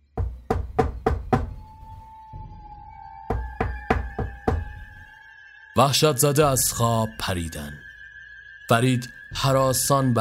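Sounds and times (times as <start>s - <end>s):
soft sustained musical drone: 0.0s - 10.1s
knocking on a door: 0.2s - 1.7s, 3.3s - 5.0s
speech: 5.8s - 7.8s, 8.7s - 10.1s.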